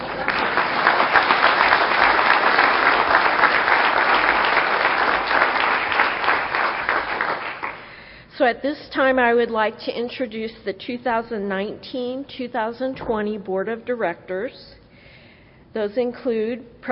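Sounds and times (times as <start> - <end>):
audience applause: 0.0 - 7.9
speech: 8.4 - 14.8, 15.7 - 16.9.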